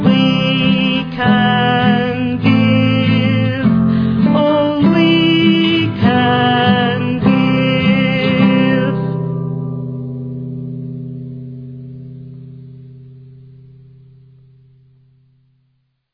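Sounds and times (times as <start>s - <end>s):
world music song in English: 0.0s - 12.0s.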